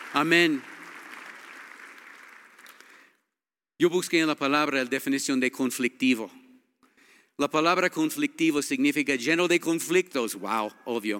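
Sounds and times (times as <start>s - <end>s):
congregation clapping during a Spanish-language church service: 0.0s - 3.2s
speech: 0.1s - 0.7s, 3.8s - 6.4s, 7.4s - 11.1s.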